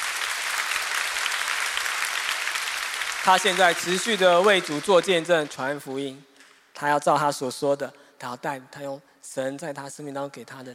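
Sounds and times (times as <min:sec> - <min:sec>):
audience applause: 0:00.0 - 0:05.6
speech: 0:03.2 - 0:10.7.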